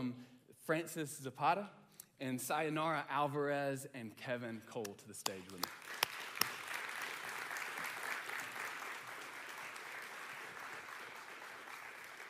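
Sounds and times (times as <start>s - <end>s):
speech: 0.0s - 5.8s
crowd applauding: 5.3s - 12.2s.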